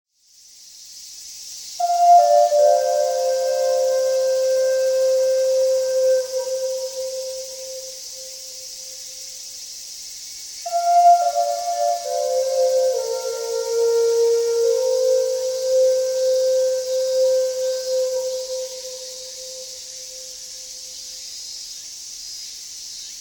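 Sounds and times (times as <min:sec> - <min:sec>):
Indian flute: 0:01.8 - 0:09.2, 0:10.7 - 0:20.8.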